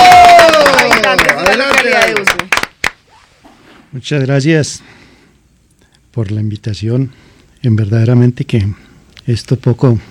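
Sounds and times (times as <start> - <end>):
people cheering: 0.0 - 2.5
crowd applause: 0.0 - 3.0
speech: 3.9 - 5.0, 6.1 - 10.0.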